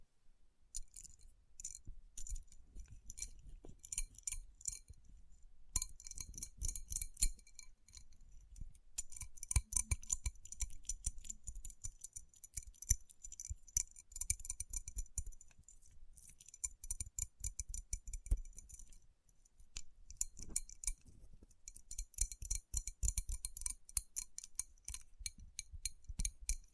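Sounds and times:
rubbing rhinestone-covered palms: 0:00.8 - 0:05.0, 0:05.8 - 0:19.0, 0:19.6 - 0:26.7
fingers tapping on rhinestone-covered palms: 0:05.8 - 0:19.0, 0:19.6 - 0:26.7.

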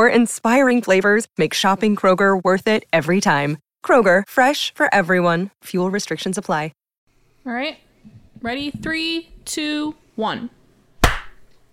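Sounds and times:
speech: 0:00.0 - 0:06.8, 0:07.4 - 0:07.8, 0:08.4 - 0:10.6
hand clap swatting a fungus gnat: 0:11.0 - 0:11.4.

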